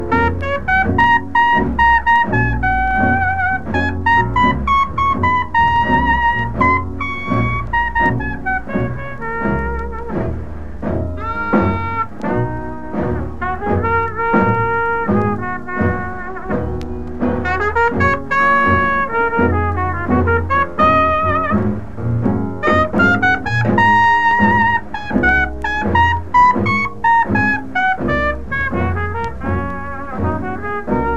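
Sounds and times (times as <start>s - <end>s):
blues improvisation: 0.0s - 31.1s.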